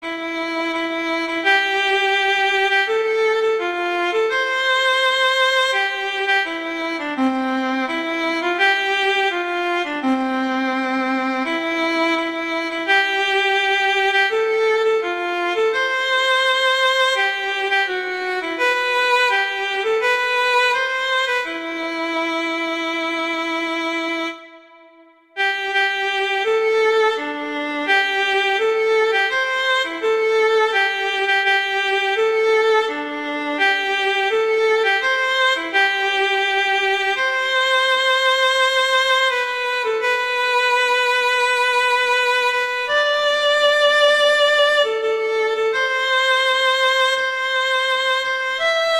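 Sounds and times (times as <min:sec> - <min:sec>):
viola: 0:00.0 - 0:48.9.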